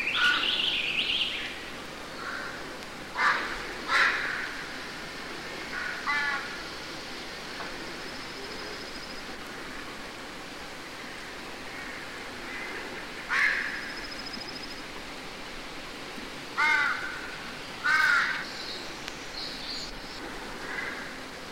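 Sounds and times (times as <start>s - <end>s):
crow cawing in woods: 0.1s - 0.6s, 2.2s - 4.6s, 5.7s - 6.5s, 11.8s - 13.9s, 16.6s - 18.5s, 20.6s - 21.1s.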